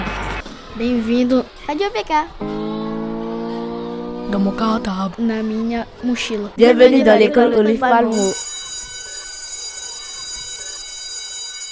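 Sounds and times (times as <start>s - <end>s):
speech: 0.8s - 2.6s, 4.3s - 8.5s
school bell ringing: 7.7s - 11.7s.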